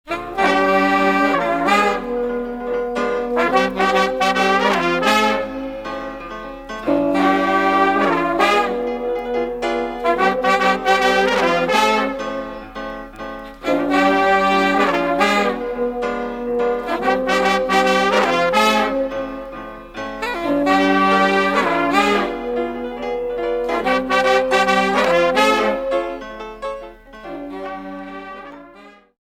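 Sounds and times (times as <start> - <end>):
musical riff: 0.1 - 29.1.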